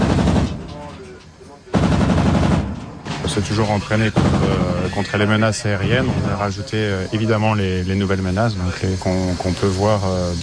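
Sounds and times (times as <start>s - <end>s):
naval 100 mm and 20 mm cannon and machine gun firing: 0.0s - 0.9s, 1.7s - 3.0s, 4.0s - 4.9s
speech: 3.4s - 10.4s.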